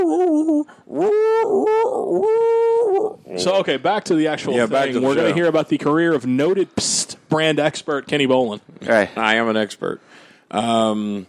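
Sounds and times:
dog whimpering and whining: 0:00.0 - 0:03.4
speech: 0:00.7 - 0:01.2, 0:03.4 - 0:11.2.

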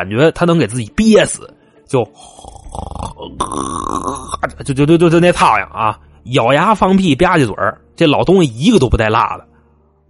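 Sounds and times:
speech: 0:00.0 - 0:09.5
voice imitating an old man's snoring: 0:02.2 - 0:04.5.

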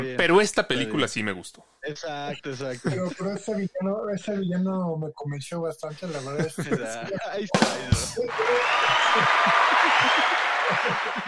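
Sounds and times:
speech: 0:00.0 - 0:11.2
laughter: 0:02.3 - 0:03.7, 0:05.9 - 0:11.2
crowd applause after a joke: 0:07.6 - 0:11.2.

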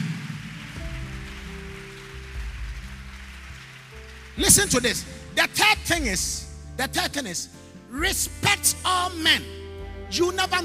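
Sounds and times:
audience clapping: 0:00.0 - 0:06.0
speech: 0:04.4 - 0:10.6.

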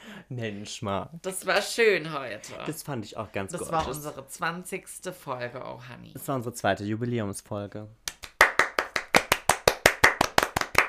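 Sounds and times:
speech: 0:00.3 - 0:08.0
applause: 0:08.1 - 0:10.8.

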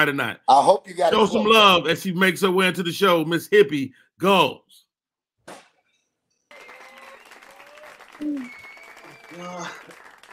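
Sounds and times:
speech: 0:00.0 - 0:04.8, 0:08.2 - 0:08.6, 0:09.3 - 0:09.9
audience applause: 0:06.5 - 0:10.3.

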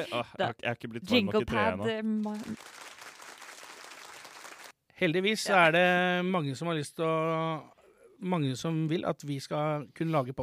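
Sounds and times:
speech: 0:00.0 - 0:03.0, 0:05.0 - 0:10.4
canned applause from a button: 0:02.4 - 0:04.8.

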